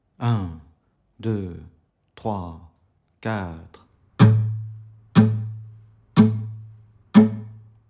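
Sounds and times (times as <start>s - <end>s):
musical exercise: 4.2s - 7.8s.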